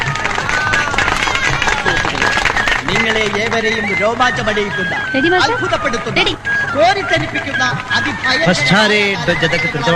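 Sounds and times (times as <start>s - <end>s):
children clapping at a stage programme: 0.0s - 4.7s
speech: 3.1s - 9.9s.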